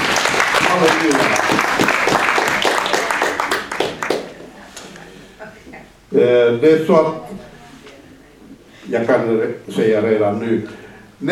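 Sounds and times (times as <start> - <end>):
audience applause: 0.0 - 4.8
speech: 0.8 - 2.0, 6.2 - 7.5, 8.9 - 11.3.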